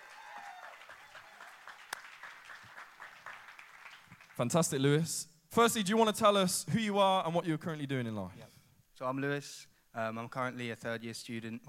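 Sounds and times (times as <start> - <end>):
audience applause: 0.0 - 4.4
speech: 4.4 - 11.6.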